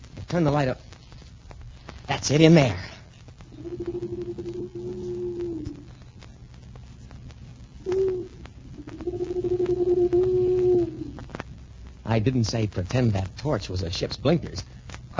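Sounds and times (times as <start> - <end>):
speech: 0.3 - 0.9, 2.2 - 2.9, 12.2 - 15.1
owl hooting: 3.5 - 6.0, 7.8 - 11.3.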